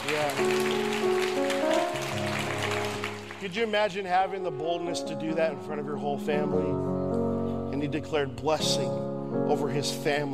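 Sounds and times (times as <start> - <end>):
church audience applause: 0.0 - 4.1
speech: 3.4 - 6.9, 7.8 - 10.3.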